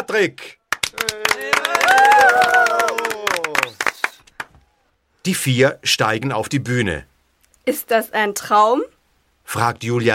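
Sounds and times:
speech: 0:00.1 - 0:02.6, 0:05.2 - 0:07.1, 0:07.7 - 0:08.9, 0:09.5 - 0:10.1
audience applause: 0:00.7 - 0:04.5.

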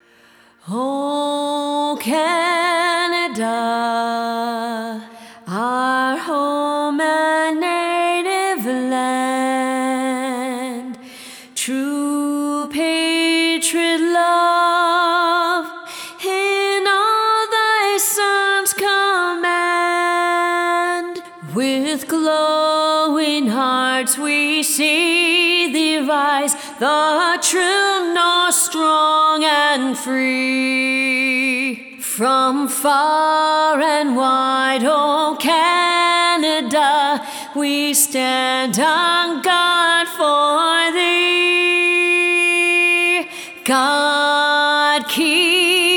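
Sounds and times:
a cappella anthem singing: 0:00.0 - 0:45.9.

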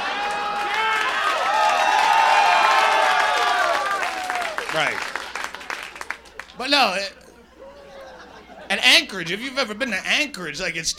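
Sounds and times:
audience applauding and cheering: 0:00.0 - 0:06.7
speech: 0:04.8 - 0:05.1, 0:06.6 - 0:07.2, 0:08.7 - 0:10.9
laughter: 0:05.2 - 0:09.8.

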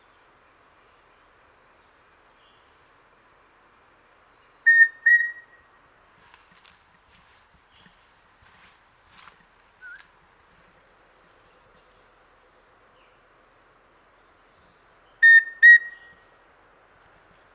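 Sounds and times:
Formicarius rufipectus rufous-breasted antthrush song: 0:04.6 - 0:05.7, 0:15.2 - 0:16.2.

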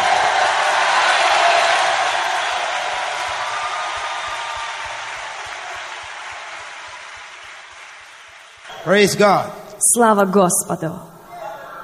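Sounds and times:
audience clapping: 0:00.0 - 0:09.4
speech: 0:08.9 - 0:11.1.

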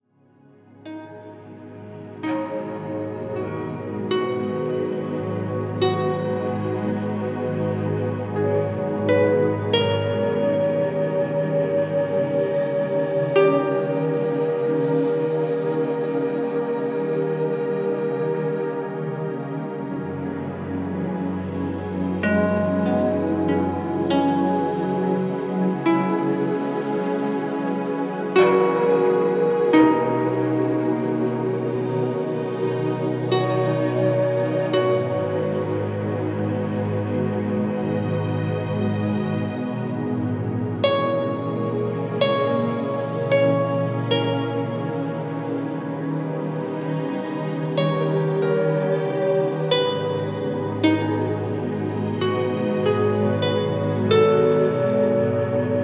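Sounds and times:
harp music: 0:00.4 - 0:55.8.

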